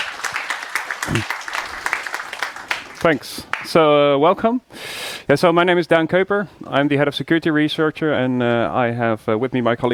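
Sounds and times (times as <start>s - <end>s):
audience applauding a security researchers' talk: 0.0s - 3.8s
speech: 1.1s - 1.4s, 3.0s - 9.9s.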